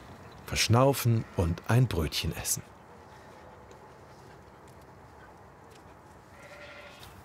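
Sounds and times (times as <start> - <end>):
rustling noise: 0.0 - 7.2
speech: 0.5 - 2.7
sheep bleating: 6.3 - 7.1.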